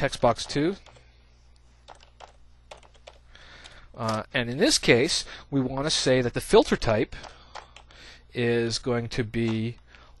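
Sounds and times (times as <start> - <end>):
speech: 0.0 - 0.9, 4.0 - 7.4, 8.4 - 9.8
faint steady hum: 0.0 - 10.1
keystrokes on a computer keyboard correcting a typo: 1.9 - 4.2, 7.2 - 7.9.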